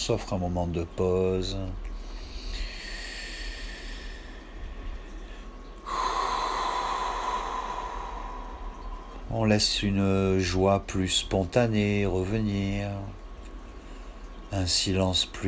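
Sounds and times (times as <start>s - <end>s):
speech: 0.0s - 1.9s, 9.3s - 13.2s, 14.5s - 15.4s
deep slow breaths: 2.0s - 9.3s.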